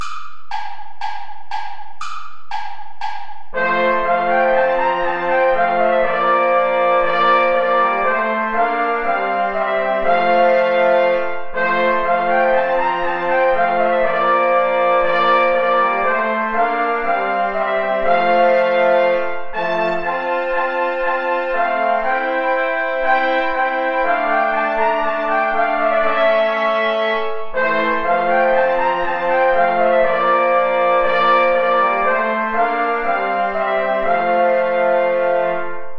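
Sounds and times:
play-along backing music without trombone: 0:00.0 - 0:35.9.

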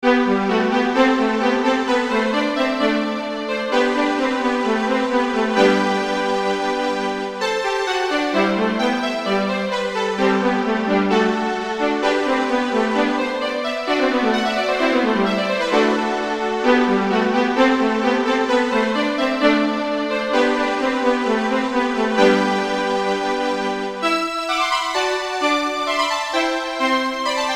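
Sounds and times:
violin duet in G major: 0:00.0 - 0:27.5.

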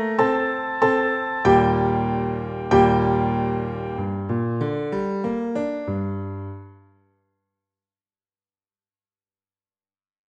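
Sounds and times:
piano duet in G minor: 0:00.0 - 0:06.9.

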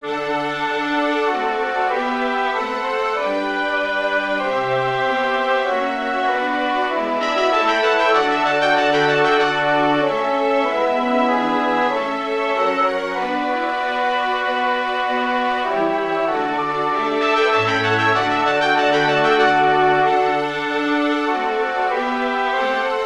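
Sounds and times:
chorus for winds and strings: 0:00.0 - 0:23.0.

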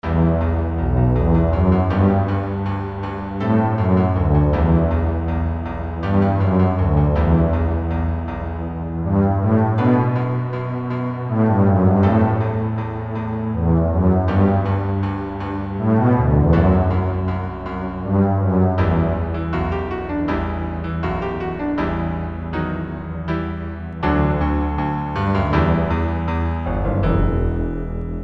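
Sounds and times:
double bass: 0:00.0 - 0:28.2
piano: 0:00.0 - 0:28.2.

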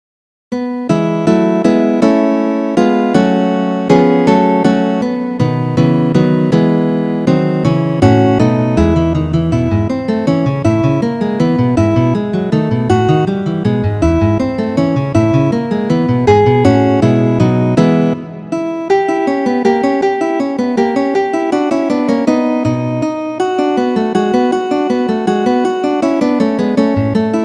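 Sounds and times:
guitar duet: 0:00.5 - 0:27.4.

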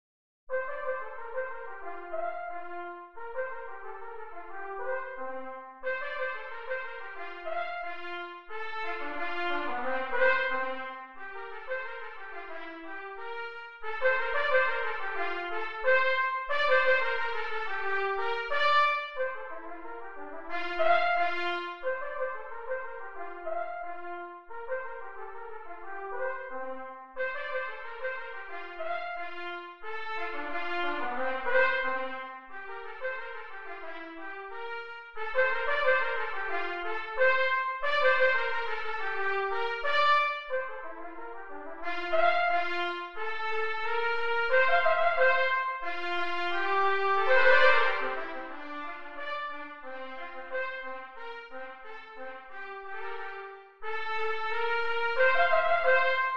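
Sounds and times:
gavotte: 0:00.5 - 0:56.3.

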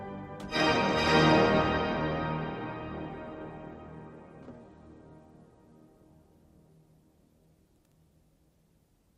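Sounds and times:
organ prelude transcription: 0:00.0 - 0:06.6.

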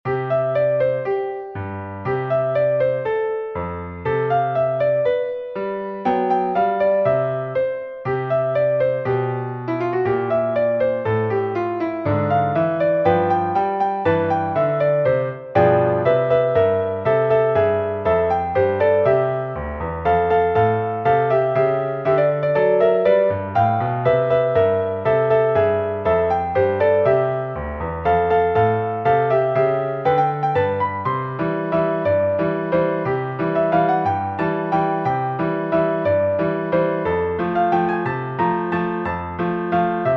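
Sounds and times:
Christmas song: 0:00.1 - 0:40.1.

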